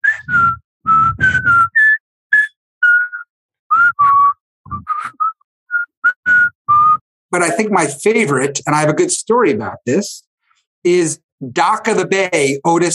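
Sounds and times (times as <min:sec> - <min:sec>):
person whistling a march tune: 0:00.0 - 0:07.0
speech: 0:07.3 - 0:12.9.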